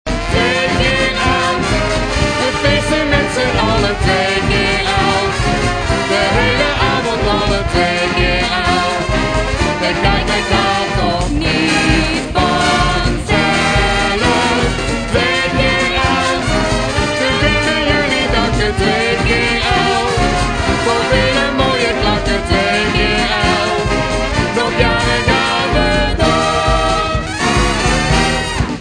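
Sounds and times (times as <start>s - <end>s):
samba music: 0.0s - 28.7s.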